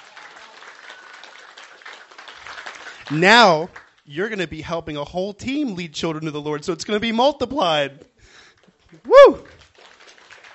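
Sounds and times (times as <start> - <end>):
audience applause: 0.0 - 4.1, 8.9 - 10.5
speech: 3.1 - 9.5.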